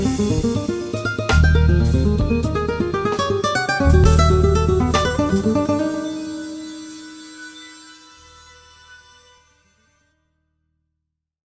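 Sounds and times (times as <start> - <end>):
jazz music: 0.0 - 7.0.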